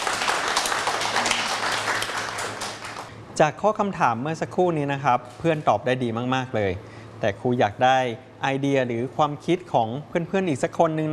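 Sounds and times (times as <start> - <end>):
classroom applause: 0.0 - 3.1
speech: 3.4 - 11.1.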